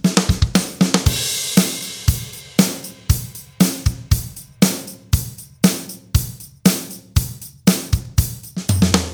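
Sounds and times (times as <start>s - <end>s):
bass drum beat: 0.0s - 9.1s.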